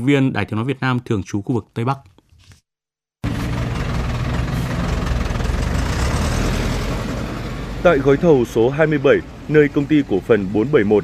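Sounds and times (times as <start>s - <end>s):
speech: 0.0s - 2.1s, 7.8s - 11.0s
excavators and bulldozers roaring at construction site in mountain forest: 3.2s - 11.0s.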